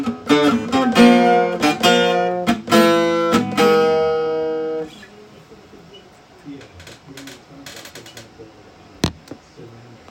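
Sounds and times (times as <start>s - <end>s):
guitar line: 0.0s - 5.0s.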